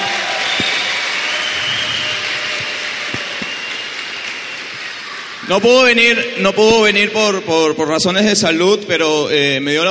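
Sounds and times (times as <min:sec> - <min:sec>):
audience applause: 0:00.0 - 0:05.6
speech: 0:05.5 - 0:09.8.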